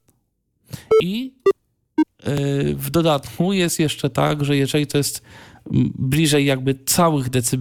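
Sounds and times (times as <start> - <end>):
short electronic volume-adjustment beeps: 0.9 - 1.1
speech: 1.0 - 1.5, 2.3 - 7.5.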